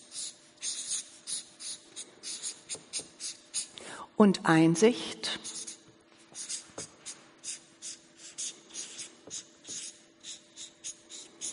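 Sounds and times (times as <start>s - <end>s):
handwriting scratching: 0.0s - 3.7s, 5.3s - 11.5s
speech: 4.2s - 5.2s.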